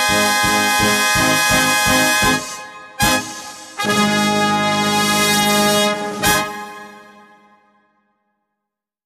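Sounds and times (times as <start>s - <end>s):
three trumpets playing a gallop: 0.0s - 7.2s.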